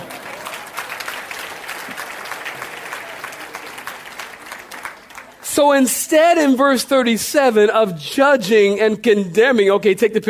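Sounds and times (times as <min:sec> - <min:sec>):
audience clapping hands: 0:00.0 - 0:05.9
speech: 0:05.6 - 0:10.2.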